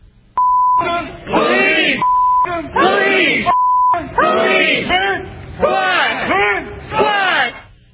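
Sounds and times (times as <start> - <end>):
crowd chanting: 1.2 - 7.7
flat steady beeps: 2.0 - 2.5, 3.5 - 4.0.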